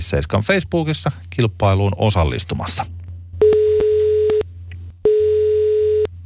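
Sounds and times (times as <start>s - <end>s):
speech: 0.0s - 3.0s
telephone ringing tone: 3.4s - 4.4s, 5.0s - 6.1s.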